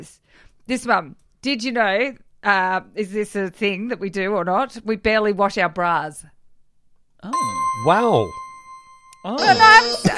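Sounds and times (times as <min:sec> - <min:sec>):
speech: 0:00.0 - 0:06.3, 0:07.2 - 0:08.4, 0:09.2 - 0:10.1
game show buzzer: 0:07.4 - 0:10.1.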